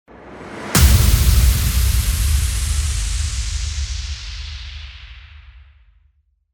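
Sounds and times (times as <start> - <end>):
impact: 0.1 - 5.9.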